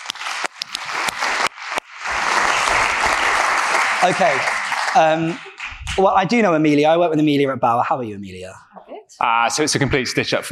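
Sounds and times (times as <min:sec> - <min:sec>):
audience applause: 0:00.0 - 0:06.4
speech: 0:04.0 - 0:10.5.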